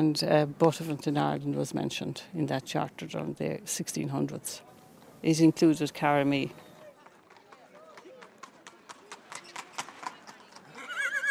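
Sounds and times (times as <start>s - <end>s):
speech: 0.0s - 6.7s
horse hooves clip-clopping on a hard surface at a street fair: 6.8s - 11.3s
horse neighing: 10.7s - 11.3s.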